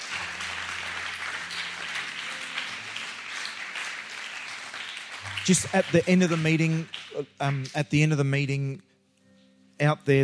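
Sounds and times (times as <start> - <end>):
audience applause: 0.0 - 7.8
speech: 5.4 - 8.9, 9.8 - 10.2.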